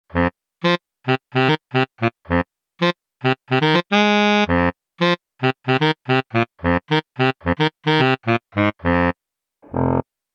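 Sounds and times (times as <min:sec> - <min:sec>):
Casio SA 80 electronic keyboard: 0:00.1 - 0:10.0.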